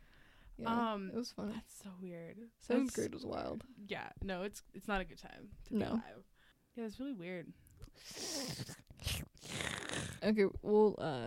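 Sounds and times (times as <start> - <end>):
speech: 0.6 - 9.2, 10.2 - 11.2
slurping a drink: 7.8 - 10.2.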